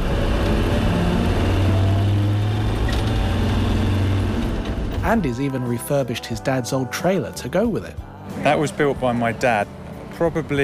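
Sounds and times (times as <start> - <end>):
Land Rover engine roar: 0.0 - 5.8, 8.2 - 10.6
speech: 5.1 - 10.6.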